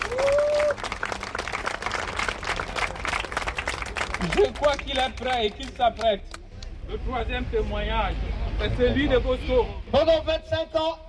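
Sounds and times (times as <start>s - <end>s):
audience applause: 0.0s - 5.8s
speech: 4.2s - 11.0s.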